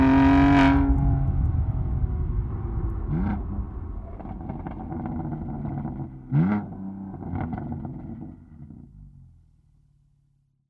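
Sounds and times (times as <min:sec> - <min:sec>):
BMW M2 Competition exhaust with Evolution Link Pipe set: 0:00.0 - 0:10.2.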